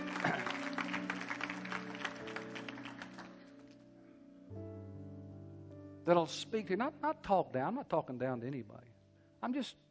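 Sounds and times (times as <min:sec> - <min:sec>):
hand claps: 0:00.0 - 0:03.5
speech: 0:06.1 - 0:09.8.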